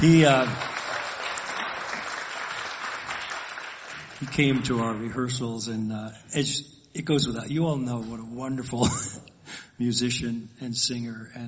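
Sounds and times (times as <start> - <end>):
speech: 0.0 - 0.7, 4.2 - 11.4
audience applause: 0.0 - 4.9.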